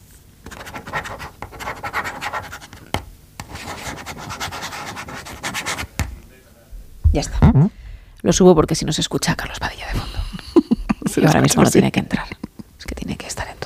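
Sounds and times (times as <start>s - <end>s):
ballpoint pen scribbling on paper: 0.5s - 2.8s, 3.4s - 5.9s
speech: 7.2s - 10.1s, 11.2s - 12.3s
laughter: 10.2s - 11.4s.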